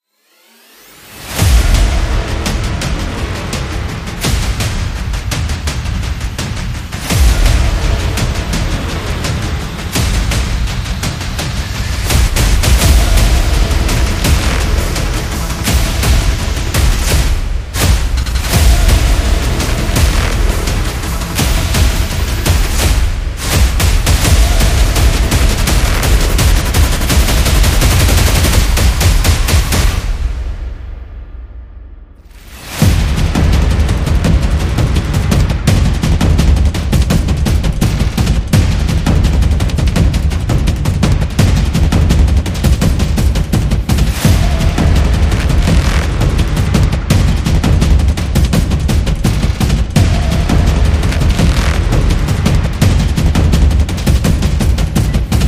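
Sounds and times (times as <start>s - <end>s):
war drums: 1.2s - 55.4s.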